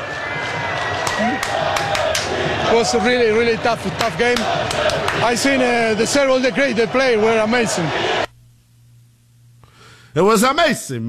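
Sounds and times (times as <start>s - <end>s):
stadium crowd in Seattle cheering for Mauricio Pochettino at a soccer match: 0.0s - 8.3s
speech: 1.2s - 8.2s, 10.1s - 11.0s.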